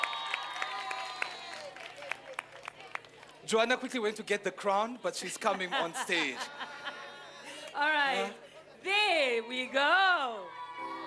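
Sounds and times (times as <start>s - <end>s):
audience round of applause: 0.0s - 3.4s
speech: 3.5s - 6.6s, 7.8s - 10.9s
laughter: 5.4s - 7.7s.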